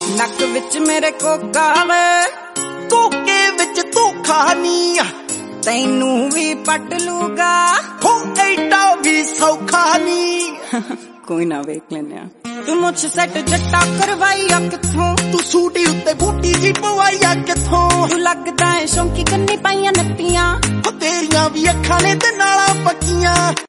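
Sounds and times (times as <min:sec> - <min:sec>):
Punjabi music: 0:00.0 - 0:11.4, 0:12.3 - 0:23.6.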